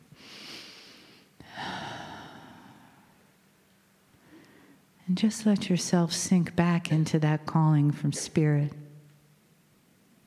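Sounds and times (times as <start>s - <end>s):
person breathing in and out during a guided meditation: 0.2s - 3.2s
speech: 5.1s - 8.8s.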